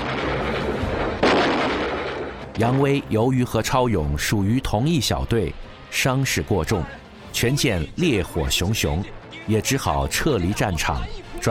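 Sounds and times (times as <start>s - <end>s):
naval artillery bombardment: 0.0s - 3.6s
speech: 2.6s - 11.4s.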